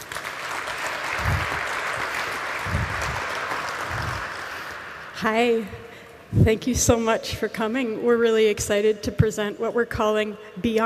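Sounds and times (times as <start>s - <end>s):
audience applause: 0.0s - 5.1s
speech: 5.2s - 10.8s.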